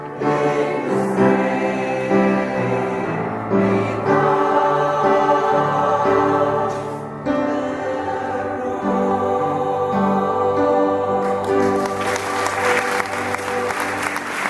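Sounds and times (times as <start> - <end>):
sustained musical notes: 0.0 - 14.4
concert audience applause: 11.4 - 14.4.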